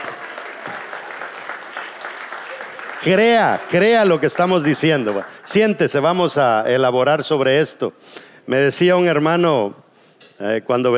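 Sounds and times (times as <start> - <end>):
person clapping hands: 0.0 - 3.5
speech: 3.0 - 9.8, 10.4 - 10.9.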